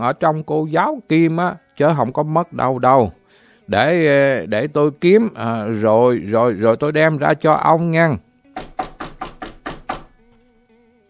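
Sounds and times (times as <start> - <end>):
speech: 0.0 - 8.2
firm knocks on a door: 8.6 - 10.2.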